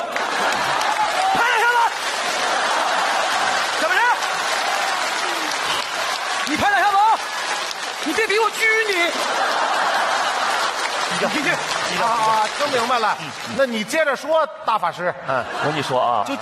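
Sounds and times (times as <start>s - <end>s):
laughter: 0.0s - 14.0s, 14.9s - 16.4s
crowd applauding: 0.0s - 14.4s
speech: 9.0s - 9.6s, 11.2s - 16.4s.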